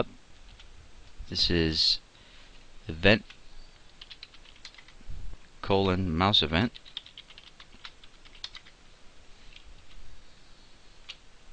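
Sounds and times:
speech: 0:01.3 - 0:02.0, 0:02.9 - 0:03.4, 0:05.7 - 0:06.9
computer keyboard typing code: 0:03.2 - 0:05.0, 0:06.7 - 0:08.8.

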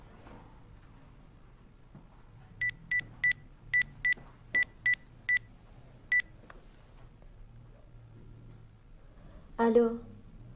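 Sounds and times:
touch-tone beeps of a telephone number being dialed: 0:02.6 - 0:05.5
speech: 0:09.6 - 0:10.1.

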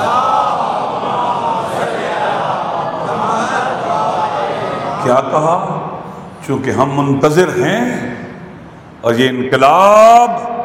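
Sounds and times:
large crowd chanting the Naara-e-Haidari slogan: 0:00.0 - 0:05.1
speech: 0:05.0 - 0:05.8, 0:06.4 - 0:08.3, 0:09.0 - 0:10.5.

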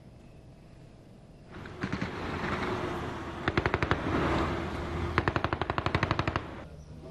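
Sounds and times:
automatic gunfire in a gun battle at an intelligence service center in Kabul: 0:01.6 - 0:04.4, 0:05.1 - 0:06.6.

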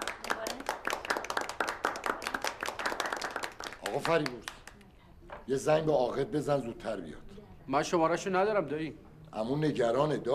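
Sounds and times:
wedding guests clapping for the bride's brother: 0:00.0 - 0:04.9
speech: 0:03.9 - 0:04.6, 0:05.5 - 0:10.3.

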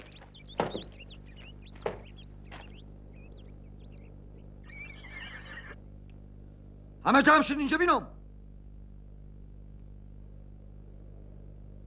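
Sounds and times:
sharp knocks: 0:00.5 - 0:01.0, 0:01.8 - 0:02.7
horse whinnying: 0:04.6 - 0:05.8
speech: 0:07.0 - 0:08.2.

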